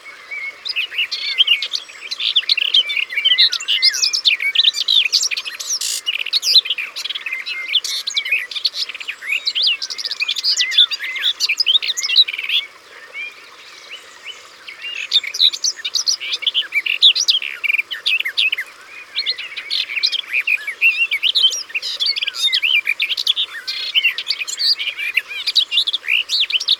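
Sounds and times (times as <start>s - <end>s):
garden warbler song: 0.3s - 26.7s.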